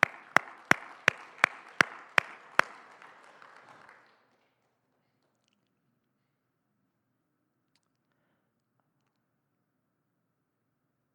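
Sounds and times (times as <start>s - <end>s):
sharp hand claps: 0.0s - 4.3s.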